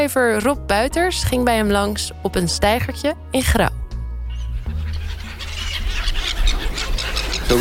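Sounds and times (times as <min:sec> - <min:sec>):
speech: 0:00.0 - 0:03.8
gulls squawking over bread on a jetty at the Pikmeer in Grou: 0:02.7 - 0:07.5.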